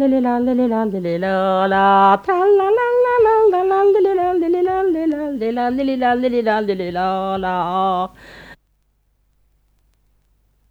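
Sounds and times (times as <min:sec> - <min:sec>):
wordless polska folk singing: 0:00.0 - 0:08.6.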